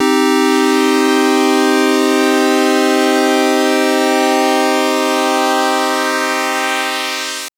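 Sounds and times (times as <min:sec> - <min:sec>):
synth pulse sweep in C3: 0:00.0 - 0:07.5.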